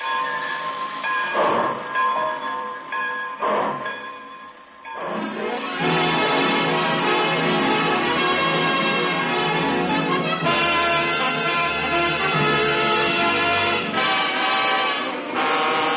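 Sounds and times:
train chugging while pulling out: 0:00.0 - 0:15.9
train whistle: 0:05.2 - 0:15.9.

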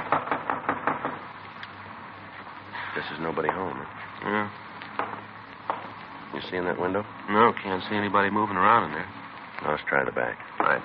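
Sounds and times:
knocking on a front door: 0:00.0 - 0:01.3
speech: 0:03.0 - 0:04.6, 0:06.3 - 0:10.8.

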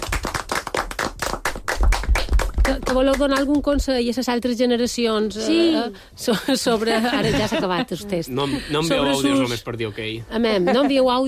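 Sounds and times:
small group applauding: 0:00.0 - 0:03.7
speech: 0:02.7 - 0:11.2
laughter: 0:06.3 - 0:09.5.

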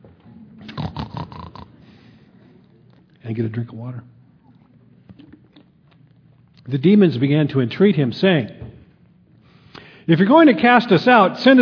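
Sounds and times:
person imitating pig snorting noises: 0:00.6 - 0:02.0
speech: 0:03.2 - 0:04.2, 0:06.7 - 0:08.6, 0:10.1 - 0:11.6.

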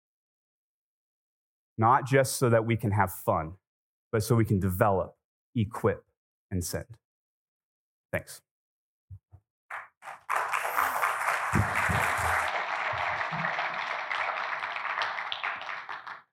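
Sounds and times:
speech: 0:01.8 - 0:07.0, 0:08.1 - 0:08.5
sustained crowd applause: 0:09.7 - 0:16.3.

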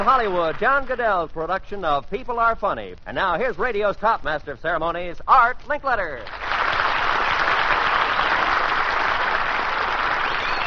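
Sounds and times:
studio audience applause at a comedy stunt show: 0:00.0 - 0:01.0, 0:06.2 - 0:10.6
speech: 0:00.0 - 0:06.5.

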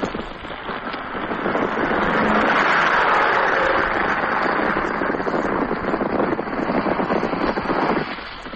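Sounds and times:
plane taking off from aircraft carrier: 0:00.0 - 0:08.5.

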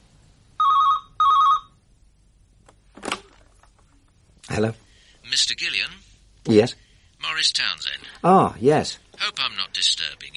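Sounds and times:
telephone ringing: 0:00.6 - 0:01.8
speech: 0:04.6 - 0:10.3.

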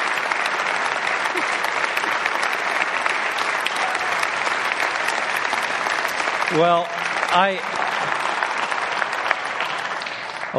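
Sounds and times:
church congregation clapping: 0:00.0 - 0:10.5
speech: 0:06.5 - 0:07.8.

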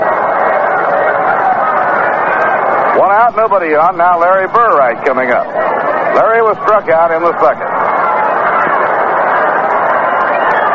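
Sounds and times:
large baseball stadium crowd murmuring in the Polo Grounds: 0:00.0 - 0:10.7
speech: 0:03.0 - 0:07.9.

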